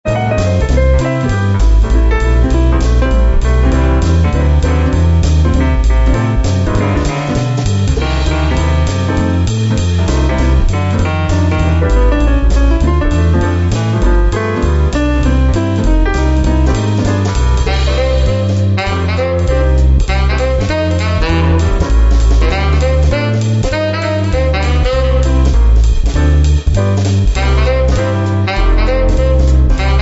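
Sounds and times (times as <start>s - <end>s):
swing music: 0.0s - 29.9s.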